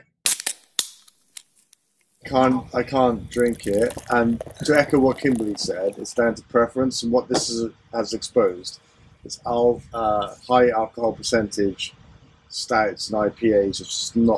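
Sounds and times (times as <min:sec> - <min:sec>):
speech: 0:02.4 - 0:14.3
pop-up book sound with dying batteries: 0:03.3 - 0:06.1.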